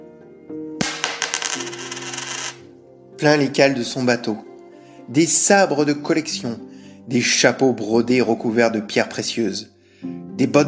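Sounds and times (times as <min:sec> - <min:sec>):
gold coins clinking: 0:00.9 - 0:02.6
speech: 0:03.2 - 0:04.5, 0:05.1 - 0:10.6.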